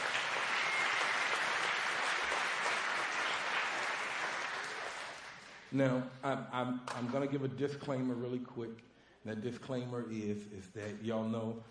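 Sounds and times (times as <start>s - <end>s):
audience clapping: 0.0s - 5.7s
speech: 5.7s - 11.6s.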